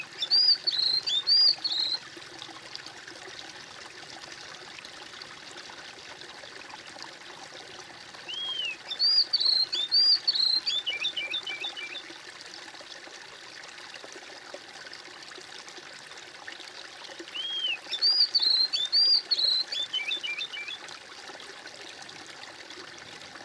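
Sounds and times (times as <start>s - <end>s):
bird singing: 0.0s - 2.0s, 8.3s - 12.1s, 17.3s - 20.8s.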